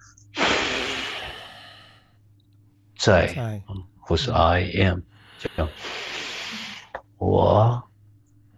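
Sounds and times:
forceful breath in a breathing exercise: 0:00.4 - 0:02.2, 0:05.2 - 0:06.9
speech: 0:03.0 - 0:06.6, 0:07.2 - 0:07.9.

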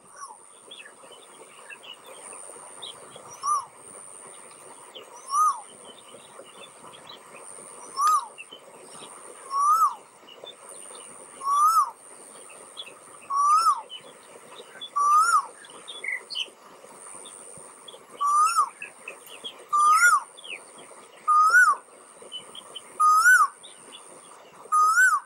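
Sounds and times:
steady high insect hum: 0:00.0 - 0:25.2
faint chirps: 0:00.1 - 0:25.2
koel cuckoo calling with rising whistled notes: 0:03.3 - 0:03.8, 0:05.2 - 0:05.8, 0:07.8 - 0:08.4, 0:09.4 - 0:10.0, 0:11.4 - 0:12.0, 0:13.3 - 0:14.0, 0:14.7 - 0:16.4, 0:18.2 - 0:18.9, 0:19.7 - 0:20.3, 0:21.2 - 0:21.8, 0:23.0 - 0:23.6, 0:24.7 - 0:25.2.

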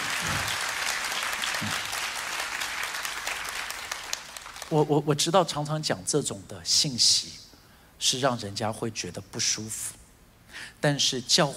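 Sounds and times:
audience clapping: 0:00.0 - 0:04.9
speech: 0:04.7 - 0:07.4, 0:08.0 - 0:11.5.

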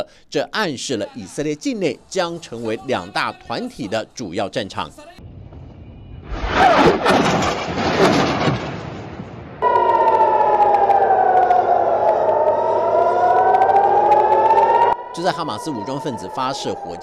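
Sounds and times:
speech: 0:00.0 - 0:05.3, 0:06.8 - 0:08.6, 0:15.2 - 0:17.0
air raid siren in Gaza and Tel Aviv: 0:09.6 - 0:17.0.

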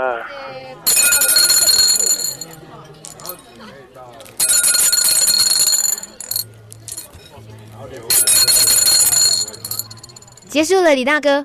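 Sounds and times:
faint voices murmuring: 0:00.0 - 0:10.7
telephone ringing in loud bright metallic bursts: 0:00.9 - 0:03.4, 0:04.4 - 0:07.1, 0:08.1 - 0:10.5
speech: 0:10.6 - 0:11.4.

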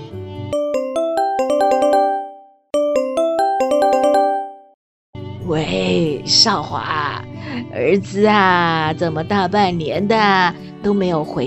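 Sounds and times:
melodic phone ringtone for incoming call: 0:00.6 - 0:04.8
speech: 0:05.5 - 0:11.4.

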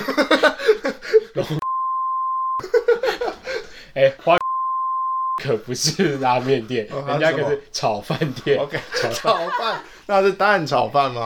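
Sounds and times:
laughter: 0:00.0 - 0:01.6, 0:02.6 - 0:04.4, 0:05.8 - 0:10.1
censor beep: 0:01.6 - 0:02.6, 0:04.4 - 0:05.4
speech: 0:04.0 - 0:04.4, 0:05.4 - 0:11.2.

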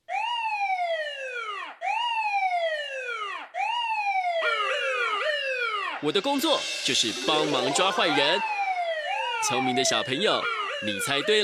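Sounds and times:
police siren wailing: 0:00.1 - 0:11.4
second siren tone: 0:04.1 - 0:11.4
speech: 0:06.0 - 0:08.6, 0:09.4 - 0:11.4.

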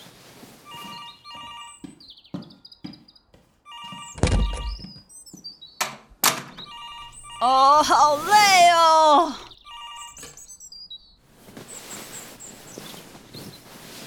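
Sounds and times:
telephone ringing: 0:00.7 - 0:01.9, 0:03.7 - 0:05.0, 0:06.6 - 0:10.7
speech: 0:07.4 - 0:09.5.

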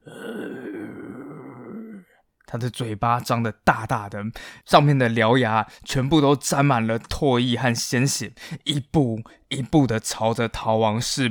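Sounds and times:
Molossian war dog low growl: 0:00.0 - 0:02.1
speech: 0:02.5 - 0:11.2.

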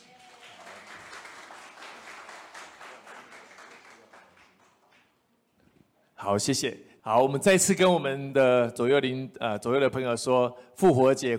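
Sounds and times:
audience applause: 0:00.0 - 0:05.2
speech: 0:06.2 - 0:11.3.

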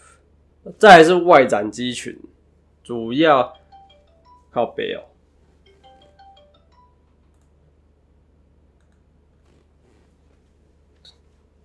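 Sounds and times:
speech: 0:00.6 - 0:02.3, 0:02.9 - 0:03.6, 0:04.5 - 0:05.1
mobile phone ringing with melodic ringtone: 0:03.4 - 0:04.8, 0:05.6 - 0:07.2.

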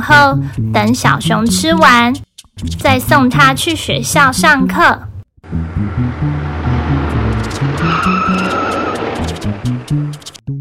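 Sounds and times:
speech: 0:00.0 - 0:06.7, 0:09.5 - 0:10.3
truck driving off: 0:05.4 - 0:10.4.

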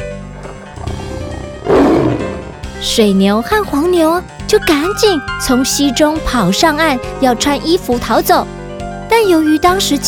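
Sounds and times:
tiger roaring: 0:00.3 - 0:02.9
speech: 0:02.8 - 0:10.0.

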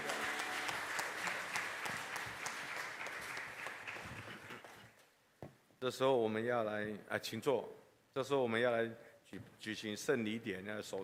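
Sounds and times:
audience applause: 0:00.0 - 0:04.8
speech: 0:05.8 - 0:11.0.

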